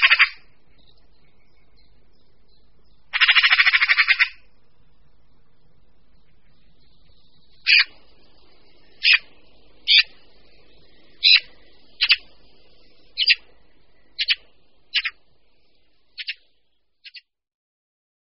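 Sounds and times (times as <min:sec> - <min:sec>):
Eurasian magpie chatter: 0:00.0 - 0:00.5, 0:03.1 - 0:04.5, 0:07.6 - 0:07.9, 0:08.9 - 0:10.2, 0:10.9 - 0:13.4, 0:14.2 - 0:15.2, 0:16.2 - 0:16.4.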